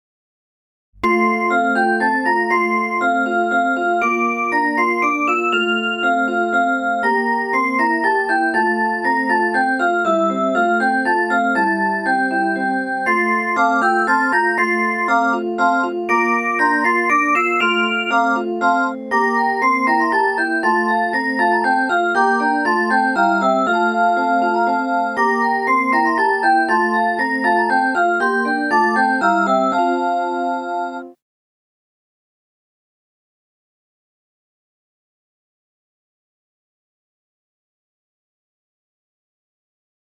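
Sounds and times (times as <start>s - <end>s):
minuet: 1.0s - 31.1s.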